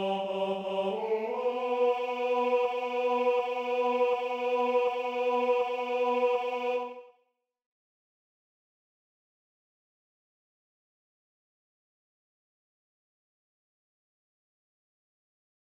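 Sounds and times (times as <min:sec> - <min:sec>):
tenor singing: 0:00.0 - 0:07.0.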